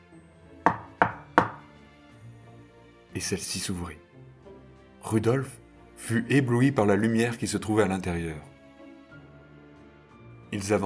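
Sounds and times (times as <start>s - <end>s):
knocking on a door: 0.7s - 1.7s
speech: 3.2s - 4.1s, 5.0s - 8.5s, 10.5s - 10.8s.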